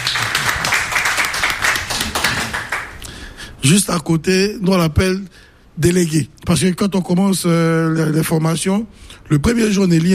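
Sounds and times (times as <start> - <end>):
audience applause: 0.0 - 3.0
speech: 3.6 - 10.1.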